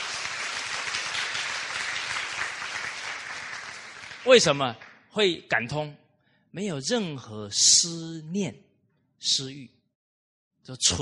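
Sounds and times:
audience applause: 0:00.0 - 0:05.0
speech: 0:04.2 - 0:09.8, 0:10.6 - 0:11.0.

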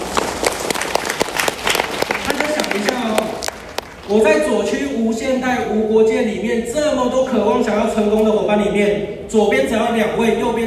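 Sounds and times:
enthusiastic applause: 0:00.0 - 0:04.2
speech: 0:02.8 - 0:03.5, 0:04.1 - 0:10.6.

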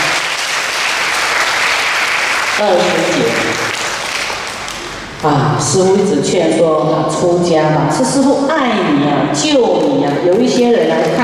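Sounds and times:
applause: 0:00.0 - 0:05.2, 0:09.8 - 0:11.2
speech: 0:02.6 - 0:03.3, 0:05.2 - 0:11.2.

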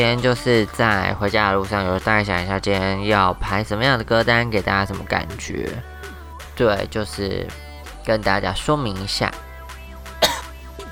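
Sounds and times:
speech: 0:00.0 - 0:05.9, 0:06.6 - 0:09.4
cough: 0:10.2 - 0:10.6.

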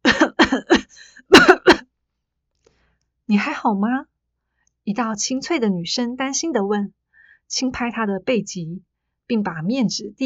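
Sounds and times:
choking cough: 0:00.1 - 0:01.8
speech: 0:03.3 - 0:04.1, 0:04.8 - 0:10.2.

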